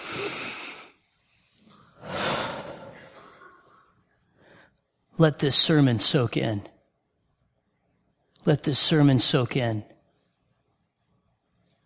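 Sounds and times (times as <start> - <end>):
church congregation taking a deep breath together: 2.0 - 3.1, 4.3 - 4.8
speech: 5.2 - 6.7, 8.4 - 9.9.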